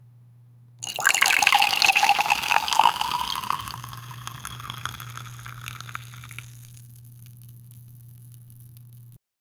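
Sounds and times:
milk pouring: 0:00.8 - 0:08.8.

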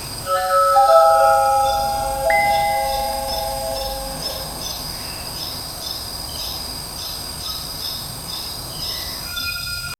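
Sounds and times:
bright cheerful adventurous music: 0:00.3 - 0:04.7.

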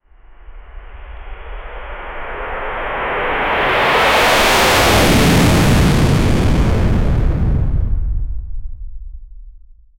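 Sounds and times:
overloaded takeoff sound: 0:03.8 - 0:08.4.

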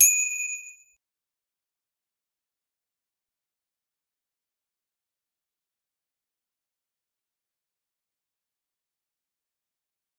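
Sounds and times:
boxing fight start bell: 0:00.0 - 0:00.9.

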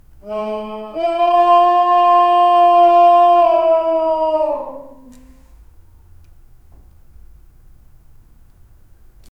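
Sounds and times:
faint moans from a crypt: 0:00.2 - 0:05.6.

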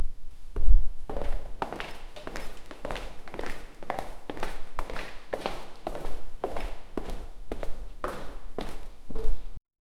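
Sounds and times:
shoes walking away: 0:00.6 - 0:09.6.

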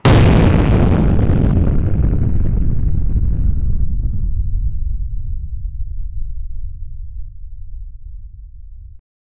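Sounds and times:
fantasy fireball: 0:00.0 - 0:08.9.

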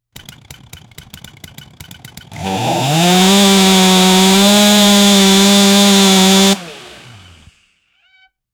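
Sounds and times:
gas powered equipment: 0:00.1 - 0:07.8.

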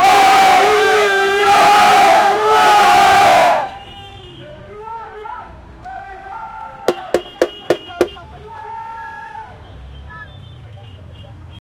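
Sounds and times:
angry mob in Chennai: 0:00.0 - 0:03.7.

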